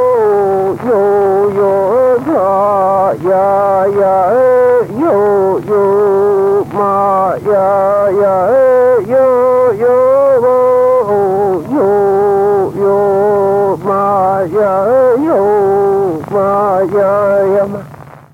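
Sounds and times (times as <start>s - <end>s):
Mapuche woman singing: 0.0s - 17.8s.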